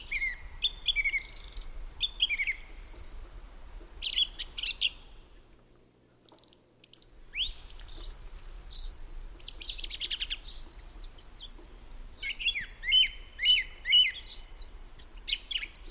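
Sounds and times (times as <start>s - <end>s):
song thrush singing varied phrases: 0.0s - 5.2s, 6.2s - 15.8s.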